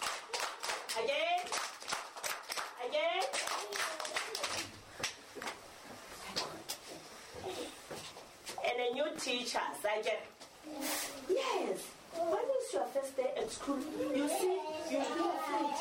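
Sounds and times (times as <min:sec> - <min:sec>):
children clapping hands: 0:00.0 - 0:05.6
speech: 0:01.0 - 0:01.5, 0:02.8 - 0:03.9, 0:09.0 - 0:15.7.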